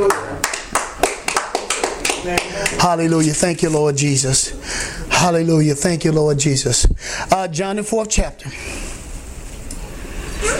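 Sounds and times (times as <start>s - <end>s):
congregation clapping in church: 0.0s - 3.5s
speech: 2.2s - 8.9s.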